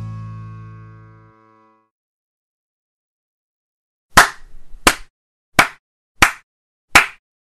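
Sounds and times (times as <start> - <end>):
slow clap: 4.2 - 6.4, 7.0 - 7.2.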